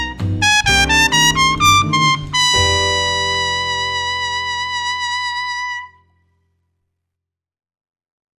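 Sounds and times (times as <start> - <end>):
lead trumpet playing a Latin etude: 0.4 - 5.9.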